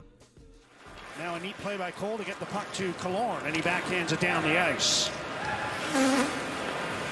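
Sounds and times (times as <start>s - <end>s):
speech: 1.2s - 5.3s, 5.9s - 6.4s
fart on hockey broadcast: 5.7s - 6.5s.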